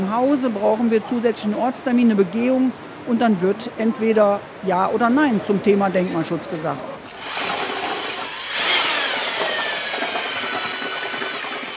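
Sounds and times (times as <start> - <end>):
speech: 0.0 - 7.4
power paddle mixer churning thick clay plaster: 7.0 - 11.7.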